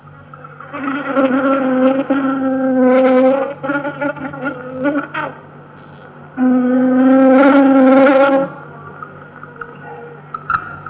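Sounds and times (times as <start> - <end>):
honey bee drones wing beats in free flight: 0.6 - 5.4, 6.0 - 8.8.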